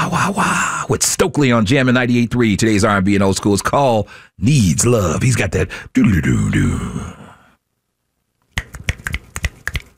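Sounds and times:
speech: 0:00.3 - 0:07.2
finger snapping: 0:08.6 - 0:09.9.

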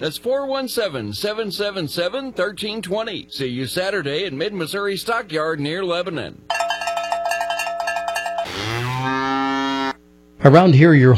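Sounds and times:
speech: 0:00.0 - 0:06.6, 0:10.4 - 0:11.1
cowbell clanking: 0:06.5 - 0:09.1
cow mooing: 0:08.4 - 0:10.0.

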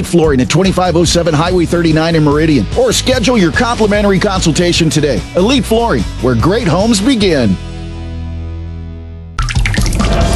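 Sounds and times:
speech: 0:00.0 - 0:07.7
water rushing from a leaky pipe: 0:09.4 - 0:10.3.

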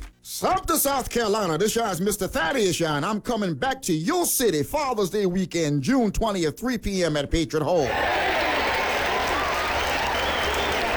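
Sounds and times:
speech: 0:00.4 - 0:08.4
audience clapping: 0:07.8 - 0:10.9.

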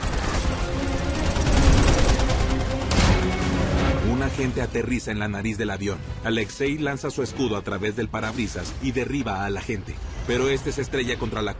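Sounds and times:
machine guns firing from parachuting agents in mid-air: 0:00.0 - 0:03.7
speech: 0:04.4 - 0:11.5.

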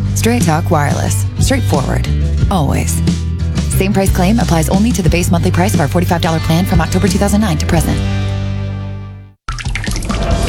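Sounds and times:
speech: 0:00.2 - 0:08.2
water dripping from a leaky pipe: 0:09.5 - 0:10.4.

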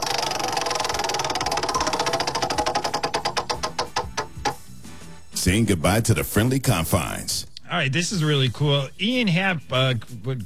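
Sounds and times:
prize wheel spinning: 0:00.0 - 0:04.6
speech: 0:05.4 - 0:10.4.

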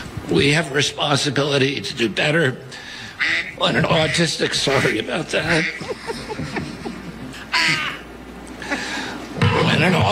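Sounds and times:
speech: 0:00.3 - 0:06.5, 0:09.8 - 0:10.1
duck quack ringtone: 0:03.2 - 0:04.3, 0:07.5 - 0:08.0
laughter: 0:03.6 - 0:10.1.

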